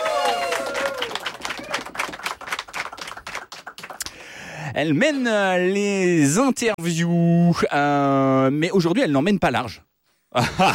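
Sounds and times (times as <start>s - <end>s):
person whooping: 0.0s - 1.9s
applause from a small audience: 0.0s - 4.4s
speech: 4.8s - 10.7s.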